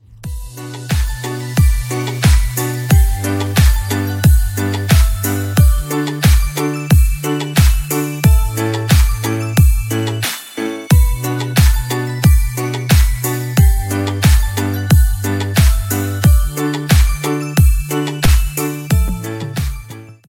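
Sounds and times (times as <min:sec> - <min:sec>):
remix ringtone: 0:00.5 - 0:20.1.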